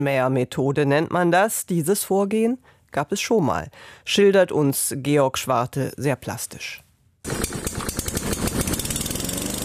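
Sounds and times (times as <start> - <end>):
speech: 0.0 - 6.8
lawn mower engine running: 7.3 - 9.6.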